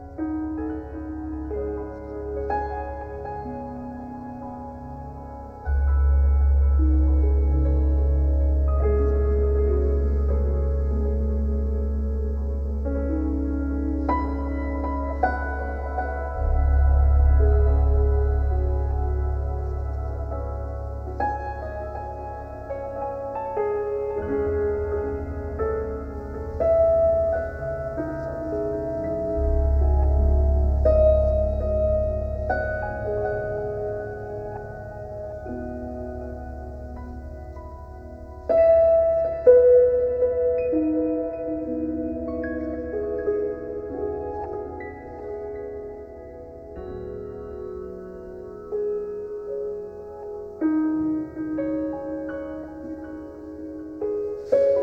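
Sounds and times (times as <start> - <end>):
piano: 0.0 - 54.8.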